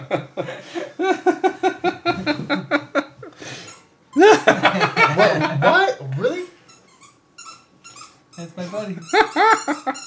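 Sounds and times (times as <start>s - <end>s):
laughter: 0.0s - 3.4s, 4.2s - 6.3s, 9.0s - 10.0s
speech: 0.1s - 0.8s, 4.5s - 5.4s
dog playing with a squeak toy: 6.6s - 10.0s.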